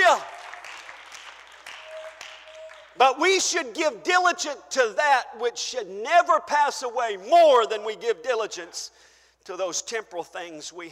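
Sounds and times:
audience clapping hands: 0.0s - 3.2s
speech: 3.0s - 10.9s.

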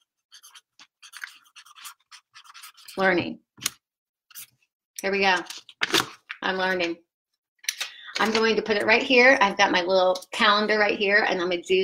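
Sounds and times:
pen writing words on a post-it note: 0.2s - 3.0s
speech: 3.0s - 3.4s, 5.0s - 5.6s, 6.4s - 7.1s, 8.2s - 11.8s.

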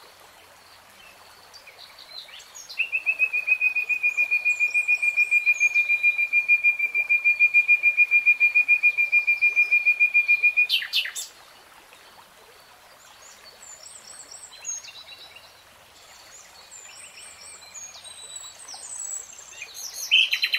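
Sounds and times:
nightingale singing: 2.7s - 11.3s, 17.2s - 20.5s.

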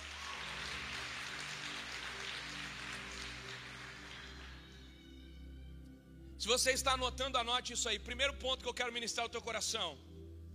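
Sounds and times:
audience applause: 0.0s - 4.8s
speech: 6.4s - 10.1s.

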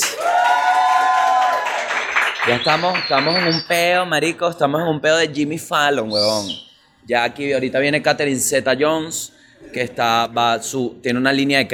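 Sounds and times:
audience applause: 0.0s - 3.6s
speech: 2.4s - 11.7s.

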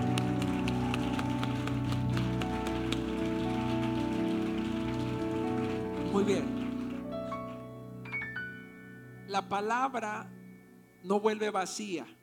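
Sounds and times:
crowd audience applauding: 0.0s - 7.9s
speech: 6.2s - 6.6s, 9.4s - 10.4s, 11.0s - 12.2s.

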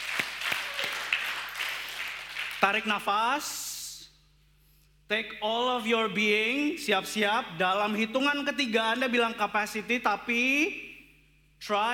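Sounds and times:
audience applause: 0.0s - 2.6s
speech: 2.6s - 3.6s, 5.1s - 10.9s, 11.6s - 11.9s.

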